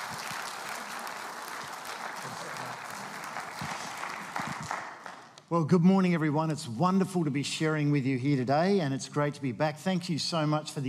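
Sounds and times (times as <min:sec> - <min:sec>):
audience applause welcoming speaker: 0:00.0 - 0:05.4
speech: 0:05.5 - 0:10.8.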